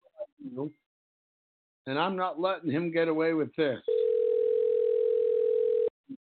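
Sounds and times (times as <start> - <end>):
speech: 0.5 - 0.8, 1.8 - 4.0
telephone dial tone while calling a guest back: 3.9 - 6.0.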